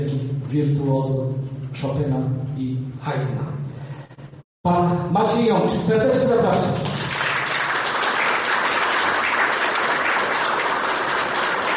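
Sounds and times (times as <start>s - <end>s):
speech: 0.0s - 3.6s, 4.6s - 7.0s
audience applause: 6.8s - 11.7s.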